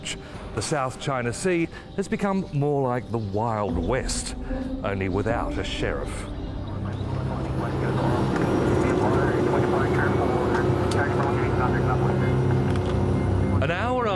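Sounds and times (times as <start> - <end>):
indistinct voices: 0.0 - 14.1
speech: 0.1 - 6.4
small Cessna propeller plane engine drone from inside the cabin: 4.4 - 14.1.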